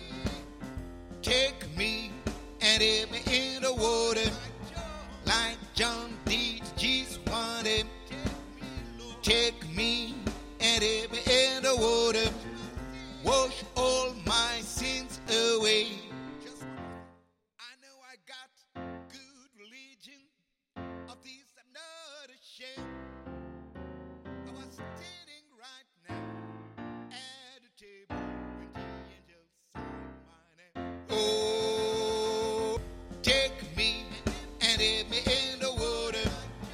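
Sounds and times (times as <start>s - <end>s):
soprano singing: 1.3s - 16.9s, 31.1s - 36.7s.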